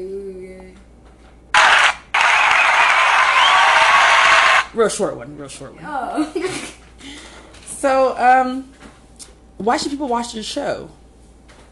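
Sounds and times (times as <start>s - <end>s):
round of applause: 1.6s - 4.7s
speech: 4.8s - 8.8s, 9.6s - 11.0s.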